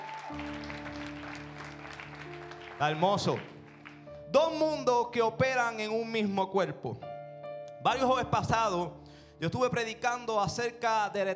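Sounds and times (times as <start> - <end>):
audience applauding: 0.0 - 4.3
speech: 0.3 - 0.6, 2.8 - 3.5, 4.3 - 7.1, 7.8 - 11.3.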